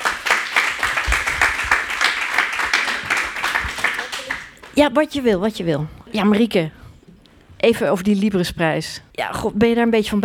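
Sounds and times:
audience applause: 0.0 - 4.8
speech: 4.8 - 6.8, 7.6 - 10.2.

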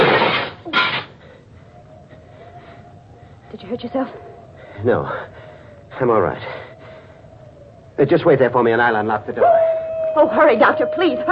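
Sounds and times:
window glass smashing: 0.0 - 1.0
speech: 3.5 - 5.4, 6.0 - 6.6, 8.0 - 9.6, 10.2 - 11.3.

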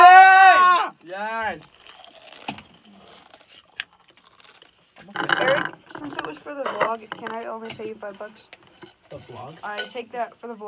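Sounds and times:
someone biting into a crunchy chip: 1.4 - 6.6
speech: 5.2 - 10.6.

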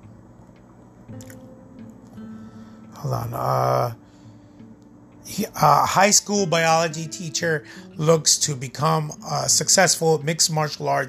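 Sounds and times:
speech: 1.1 - 1.5, 3.0 - 4.0, 5.2 - 11.0
person drinking water, sipping and swallowing: 1.2 - 1.4.

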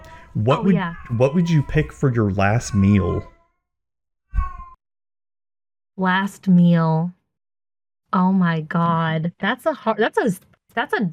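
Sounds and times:
cat meowing: 0.1 - 3.6, 4.4 - 4.8
speech: 0.4 - 3.3, 6.0 - 7.2, 8.1 - 11.1.

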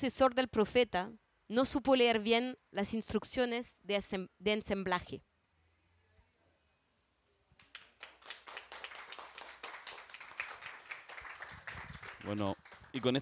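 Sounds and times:
speech: 0.0 - 5.3, 12.2 - 13.2
audience applause: 7.7 - 13.2.

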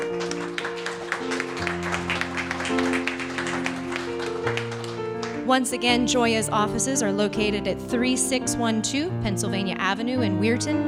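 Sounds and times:
audience applause: 0.0 - 5.4
sustained music with long held chords: 0.0 - 8.2
speech: 5.5 - 10.8.

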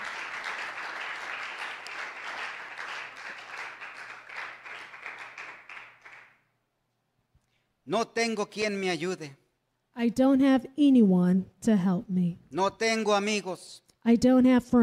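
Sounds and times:
roomful of people applauding: 0.0 - 6.4
speech: 7.9 - 9.4, 10.0 - 14.8.

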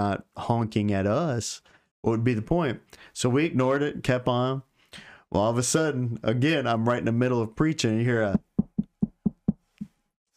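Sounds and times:
speech: 0.0 - 8.5
knocking on a door: 8.3 - 9.6.

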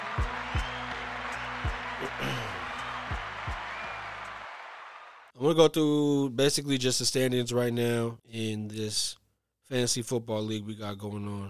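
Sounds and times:
applause: 0.0 - 5.3
speech: 5.4 - 11.4.

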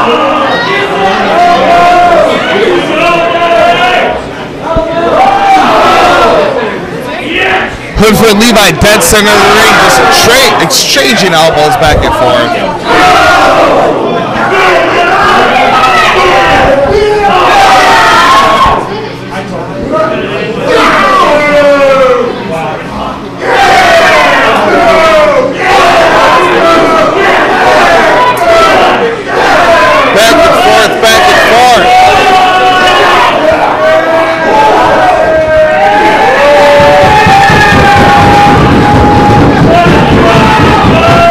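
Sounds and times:
wrestling crowd cheering at a ring match: 0.0 - 41.2
speech: 8.3 - 14.0.

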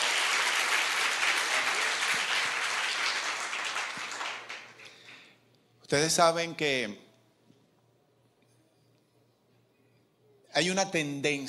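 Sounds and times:
audience applauding loudly: 0.0 - 5.3
speech: 5.9 - 7.0, 10.6 - 11.4.

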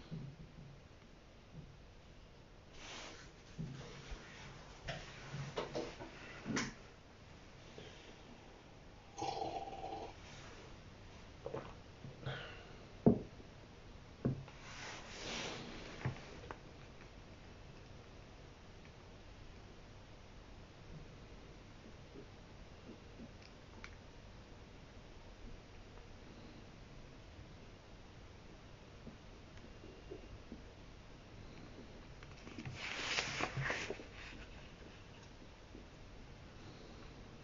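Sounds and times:
faint steady hiss: 0.0 - 37.4
soft rustles of reading a book: 32.4 - 35.0.

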